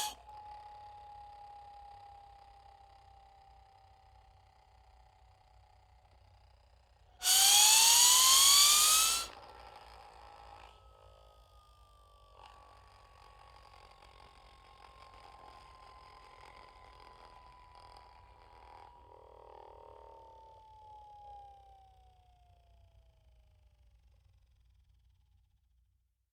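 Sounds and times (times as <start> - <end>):
ufo zip whistle: 7.2 - 9.3.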